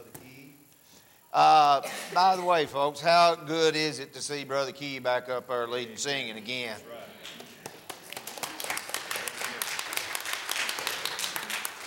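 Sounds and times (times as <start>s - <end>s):
speech: 1.3s - 7.4s
audience applause: 7.2s - 11.8s.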